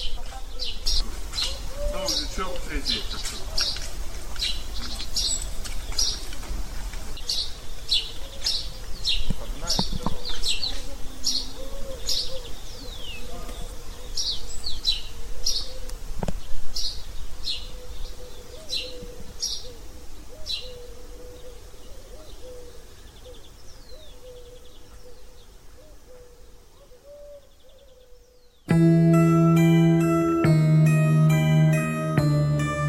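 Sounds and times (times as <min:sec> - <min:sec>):
laughing doves cooing: 0:00.0 - 0:04.1, 0:09.8 - 0:16.2, 0:17.5 - 0:28.2
high rhythmic chirps from small birds or insects: 0:28.7 - 0:32.8.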